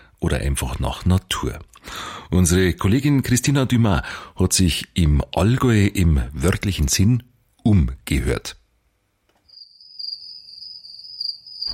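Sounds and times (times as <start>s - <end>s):
speech: 0.2s - 8.6s
crickets chirping on a summer evening in the Allgäu: 9.5s - 11.7s.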